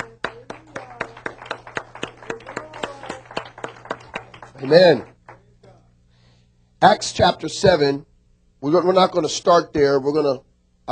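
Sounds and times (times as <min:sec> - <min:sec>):
audience hand clapping: 0:00.0 - 0:05.5
speech: 0:04.6 - 0:05.1, 0:06.8 - 0:10.8.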